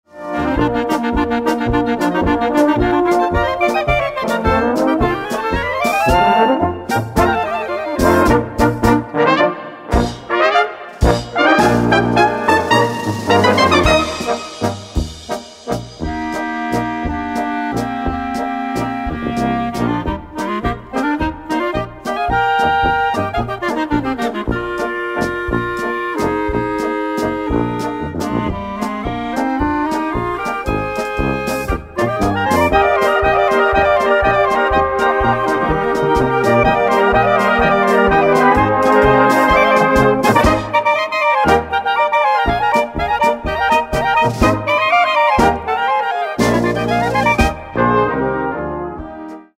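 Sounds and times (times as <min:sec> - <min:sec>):
brass band playing polka: 0:00.1 - 0:49.5.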